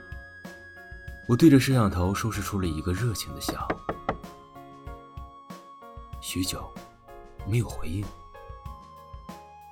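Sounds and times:
speech: 1.3 - 4.0, 6.3 - 6.8, 7.4 - 8.2
knocking on a door: 3.4 - 4.4.

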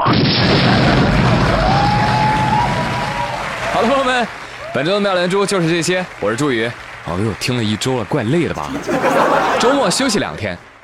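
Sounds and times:
explosion sound effect: 0.0 - 3.8
laughter: 0.5 - 2.3, 8.2 - 10.6
speech: 3.8 - 10.7.

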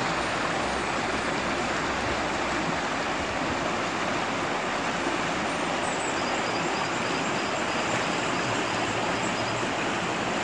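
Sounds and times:
river water rushing over stones in Puente Viejo: 0.0 - 10.4.

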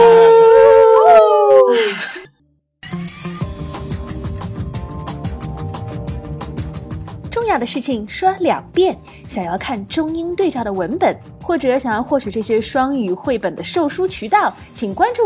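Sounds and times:
dog howling and yipping: 0.0 - 2.0
music with a steady plucky rhythmic beat: 2.8 - 15.2
speech: 7.6 - 15.2.

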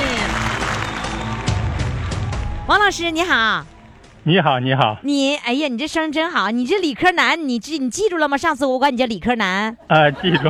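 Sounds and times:
applause: 0.0 - 2.5
speech: 2.7 - 10.4
laughter: 9.8 - 10.4.

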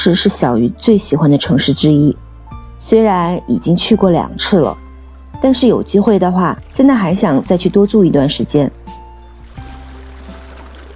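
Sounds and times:
speech: 0.0 - 2.2, 2.8 - 4.8, 5.4 - 8.9
sea waves: 5.4 - 10.9.

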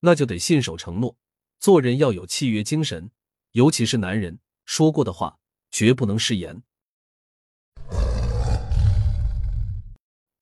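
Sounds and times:
speech: 0.0 - 6.7
tiger roar: 7.8 - 10.3.

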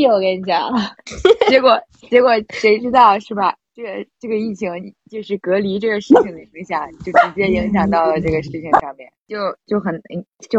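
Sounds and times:
speech: 0.0 - 10.5
dog barking: 6.1 - 6.3, 7.1 - 7.4.

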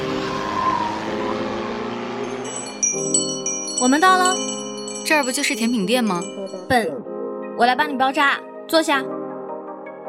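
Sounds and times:
car tires squealing: 0.0 - 2.7
car engine roaring while accelerating hard: 0.0 - 3.8
speech: 3.8 - 9.2.

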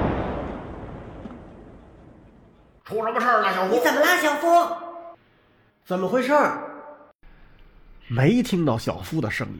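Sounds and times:
air cannon blast: 0.0 - 2.6
speech: 2.9 - 4.8, 5.9 - 6.7, 8.1 - 9.5.

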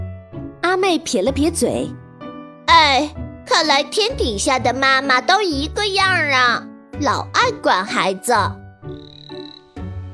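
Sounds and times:
speech: 0.6 - 2.0, 2.7 - 8.6
frogs croaking: 8.8 - 10.1.

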